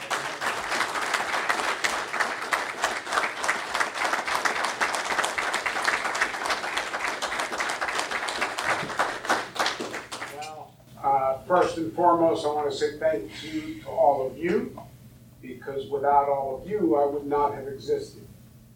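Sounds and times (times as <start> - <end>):
crowd applause: 0.0 - 10.4
speech: 11.6 - 14.9, 15.6 - 18.2.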